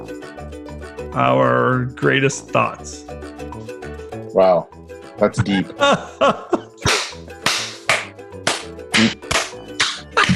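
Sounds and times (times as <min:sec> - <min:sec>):
speech: 0:01.2 - 0:03.3, 0:04.4 - 0:06.6, 0:09.0 - 0:09.2
laughter: 0:05.4 - 0:07.0, 0:10.1 - 0:10.3
hand clapping: 0:06.8 - 0:10.3.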